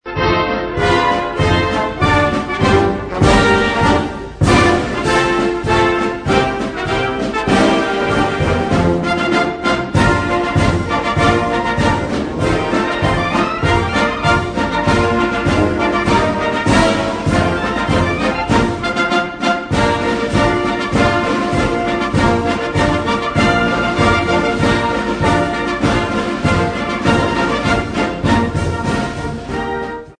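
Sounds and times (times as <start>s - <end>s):
military march: 0.1s - 30.1s.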